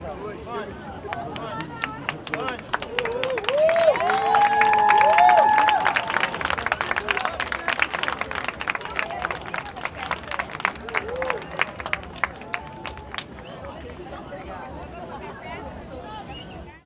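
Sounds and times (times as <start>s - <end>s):
applause for sunset at Pedra do Arpoador in Ipanema, Rio de Janeiro: 1.0s - 14.5s.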